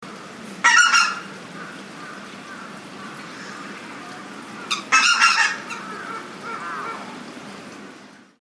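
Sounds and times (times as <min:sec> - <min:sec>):
background hiss: 0:00.1 - 0:08.3
goose honking: 0:00.6 - 0:07.2.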